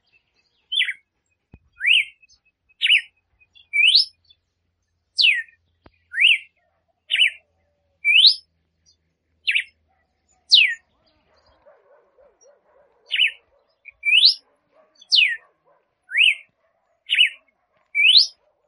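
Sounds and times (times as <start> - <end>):
female red-cowled cardinal singing to stimulate the male: 1.6 - 4.3, 5.2 - 6.5, 8.0 - 8.5, 9.5 - 9.8, 10.5 - 10.9, 13.1 - 15.5, 16.1 - 16.5, 17.1 - 18.5.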